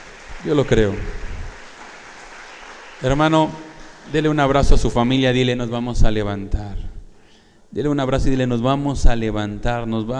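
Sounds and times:
audience clapping: 0.0s - 5.1s
speech: 0.4s - 1.3s, 3.0s - 6.8s, 7.7s - 10.1s.

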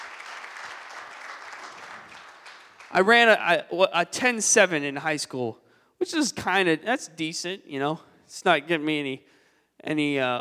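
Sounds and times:
audience applause: 0.0s - 3.1s
speech: 2.9s - 10.3s.

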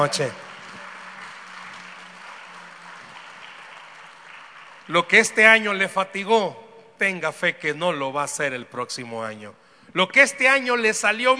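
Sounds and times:
speech: 0.0s - 0.5s, 4.9s - 11.3s
audience applause: 0.0s - 5.7s.

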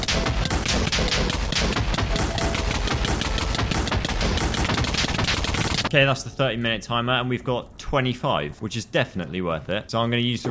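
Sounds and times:
video game bed explosions: 0.0s - 6.0s
speech: 5.9s - 10.4s.

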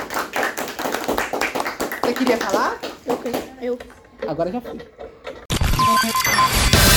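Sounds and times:
hand claps: 0.0s - 3.5s
speech: 2.1s - 5.1s, 5.9s - 6.8s.

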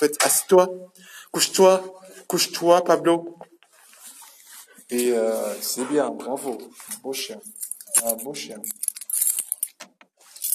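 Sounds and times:
speech: 0.0s - 3.5s, 4.9s - 8.9s
keys jangling: 7.4s - 10.5s.

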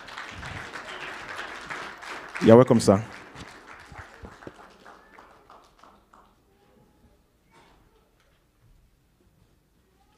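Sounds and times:
audience clapping: 0.0s - 6.5s
speech: 2.4s - 3.2s.

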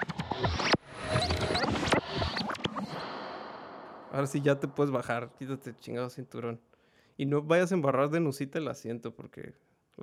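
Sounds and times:
time travel sound effect: 0.2s - 5.8s
speech: 4.2s - 10.0s.

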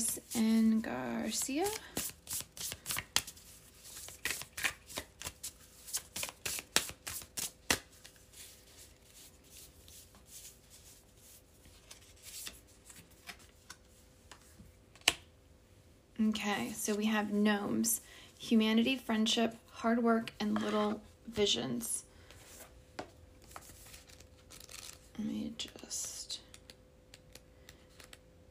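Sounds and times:
speech: 0.0s - 2.0s, 16.3s - 22.1s
Pure Magic oracle cards handled and shuffled: 0.0s - 15.2s, 23.4s - 25.0s.

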